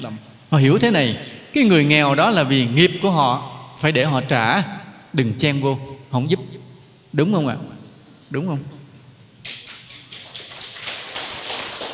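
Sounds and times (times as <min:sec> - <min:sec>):
speech: 0:00.0 - 0:07.7, 0:08.3 - 0:08.8
audience clapping hands: 0:09.4 - 0:11.9.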